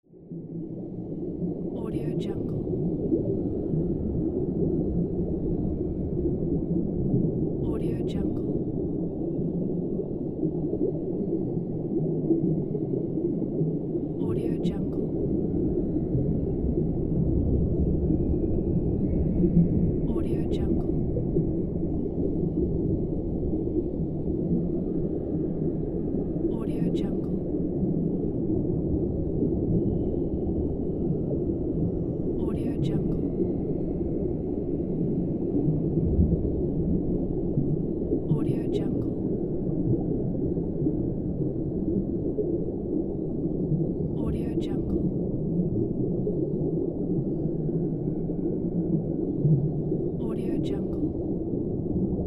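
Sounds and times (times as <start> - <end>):
underwater sound: 0.1 - 52.2.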